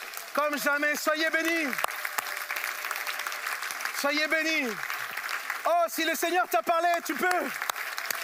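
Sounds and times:
audience applause: 0:00.0 - 0:08.2
speech: 0:00.4 - 0:01.9, 0:04.0 - 0:04.9, 0:05.6 - 0:07.6.

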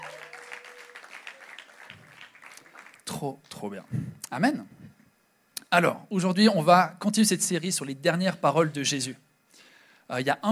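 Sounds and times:
audience applause: 0:00.0 - 0:03.2
speech: 0:03.2 - 0:04.8, 0:05.7 - 0:09.2, 0:10.1 - 0:10.4.

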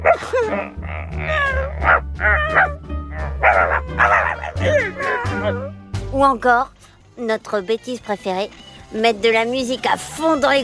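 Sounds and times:
person imitating dog barking: 0:00.0 - 0:05.7
speech: 0:00.2 - 0:01.3, 0:06.2 - 0:10.6.

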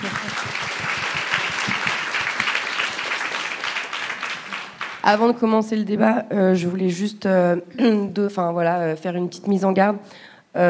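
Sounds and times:
laughter: 0:00.0 - 0:02.5
audience applause: 0:00.0 - 0:05.1
speech: 0:05.0 - 0:10.6.

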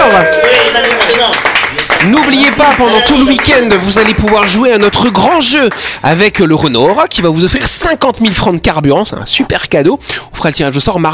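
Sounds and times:
voices whooping and cheering: 0:00.0 - 0:01.4
audience applause: 0:00.0 - 0:05.3
speech: 0:02.8 - 0:11.1.

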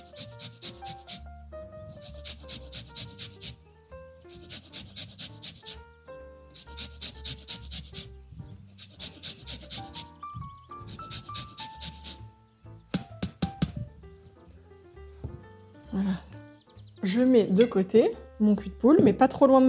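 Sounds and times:
orange peel being zested on a grater: 0:00.0 - 0:01.3, 0:01.9 - 0:03.6, 0:04.2 - 0:05.8, 0:06.5 - 0:08.1, 0:08.7 - 0:10.2, 0:10.8 - 0:12.2
tonal music: 0:00.0 - 0:19.6
speech: 0:17.1 - 0:19.6.

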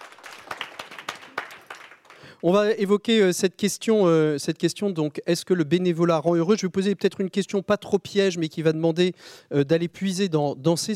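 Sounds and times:
audience applause: 0:00.0 - 0:02.3
speech: 0:02.4 - 0:10.9.

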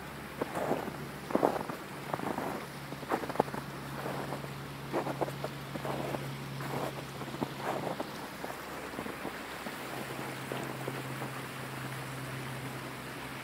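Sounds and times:
flowing water: 0:00.0 - 0:13.4
boots crunching through snow: 0:00.4 - 0:10.8.

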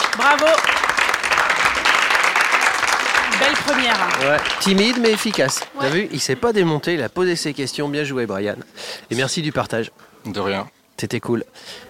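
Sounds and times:
audience applause: 0:00.0 - 0:06.1
speech: 0:00.2 - 0:00.8, 0:03.5 - 0:11.8.

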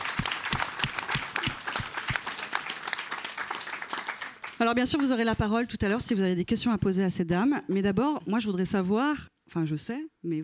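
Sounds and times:
audience applause: 0:00.0 - 0:04.6
speech: 0:04.6 - 0:10.4.

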